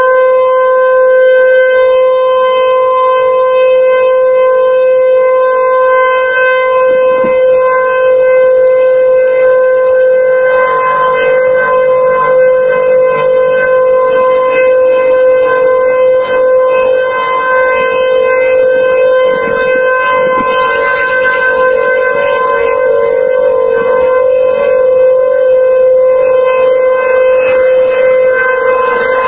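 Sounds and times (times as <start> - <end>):
tornado warning sirens in Linn County: 0.0 - 29.2.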